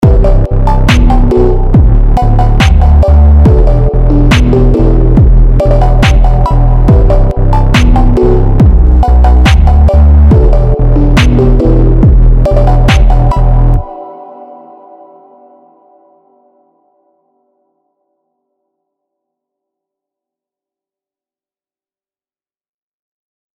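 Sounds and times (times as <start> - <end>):
phonk music: 0.0 - 14.7.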